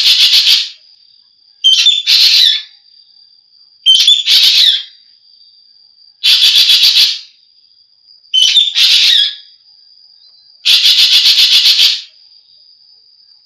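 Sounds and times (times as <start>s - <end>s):
Javan green magpie whistles and rasps: 0.0s - 0.8s, 1.6s - 2.7s, 3.9s - 4.9s, 6.2s - 7.3s, 8.4s - 9.5s, 10.7s - 12.1s.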